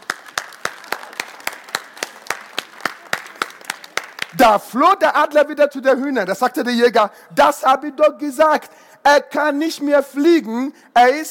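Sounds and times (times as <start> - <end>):
audience applause: 0.0 - 4.4
speech: 4.4 - 11.2.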